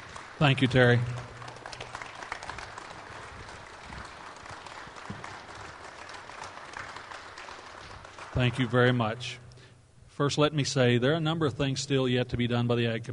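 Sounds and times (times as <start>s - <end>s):
standing ovation applause: 0.0s - 9.4s
speech: 0.4s - 1.2s, 8.4s - 9.4s, 10.2s - 13.1s.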